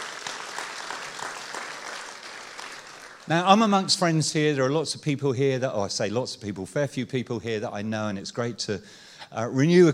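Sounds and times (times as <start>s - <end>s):
crowd applauding: 0.0s - 3.8s
speech: 3.3s - 9.9s.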